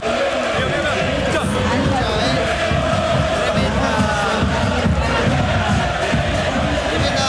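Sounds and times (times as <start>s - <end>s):
football stadium crowd shouting and chanting: 0.0s - 7.2s.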